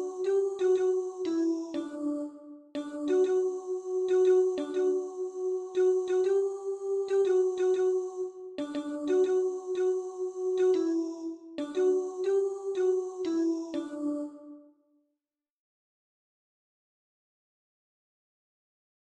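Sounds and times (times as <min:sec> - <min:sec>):
soprano singing: 0:00.0 - 0:14.6.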